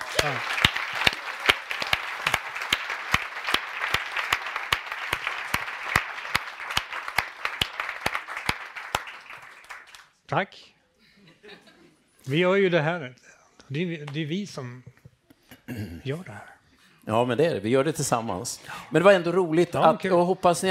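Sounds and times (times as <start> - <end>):
warm audience applause: 0.0 - 10.1
speech: 0.2 - 0.7, 10.3 - 10.8, 12.2 - 14.9, 15.7 - 20.7.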